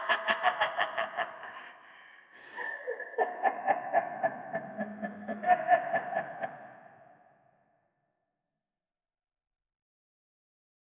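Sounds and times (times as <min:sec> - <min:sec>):
woman laughing evilly and sinisterly: 0:00.0 - 0:01.8, 0:02.4 - 0:07.0.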